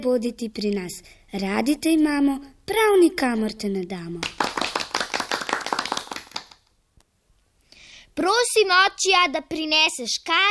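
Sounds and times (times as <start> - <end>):
speech: 0.0 - 4.5, 8.2 - 10.4
short round of applause: 4.2 - 6.7.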